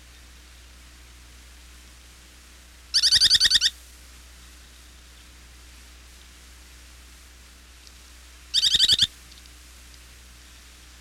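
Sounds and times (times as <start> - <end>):
Semipalmated Sandpiper giving harsh pulsed trills: 8.5 - 9.1.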